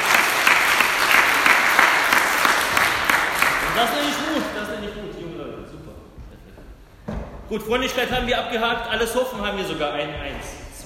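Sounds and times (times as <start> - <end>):
audience applause: 0.0 - 4.6
speech: 3.8 - 4.6, 7.5 - 10.6.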